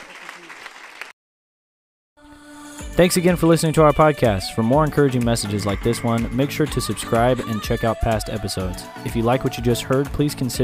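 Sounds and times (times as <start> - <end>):
audience hand clapping: 0.0 - 1.1, 4.9 - 7.4
speech: 3.0 - 10.6.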